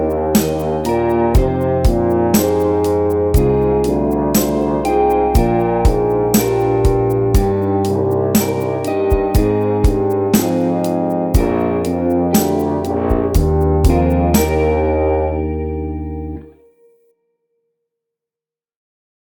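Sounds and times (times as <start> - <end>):
tuba melody: 0.0 - 16.5.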